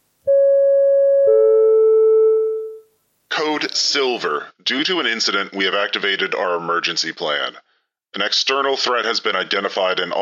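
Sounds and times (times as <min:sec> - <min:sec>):
PA system two-note descending chime: 0:00.3 - 0:02.8
speech: 0:03.6 - 0:10.1.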